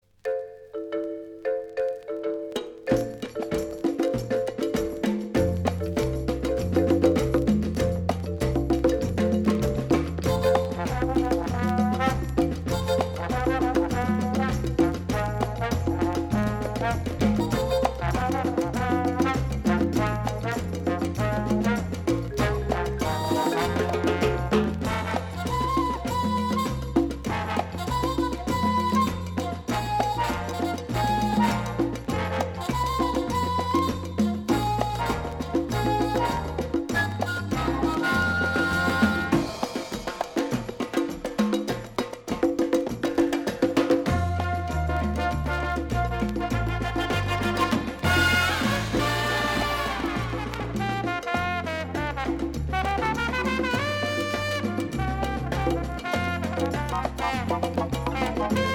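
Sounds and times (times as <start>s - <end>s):
modern jazz: 1.3s - 58.7s.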